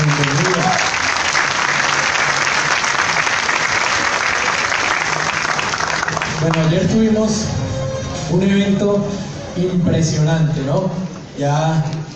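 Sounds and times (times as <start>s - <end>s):
audience applause: 0.0s - 6.9s
speech: 6.4s - 7.6s, 8.3s - 12.1s.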